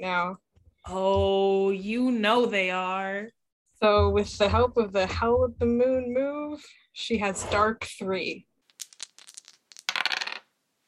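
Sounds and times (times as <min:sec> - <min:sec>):
speech: 0:00.0 - 0:08.5
dice clattering across a hard surface: 0:08.7 - 0:10.5.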